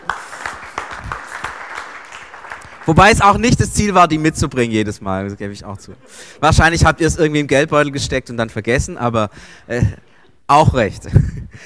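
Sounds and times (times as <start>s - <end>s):
audience applause: 0.0s - 3.2s
speech: 2.9s - 11.6s.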